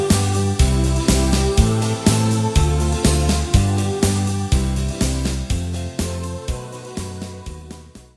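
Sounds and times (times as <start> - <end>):
backing track without lead guitar: 0.0 - 8.1.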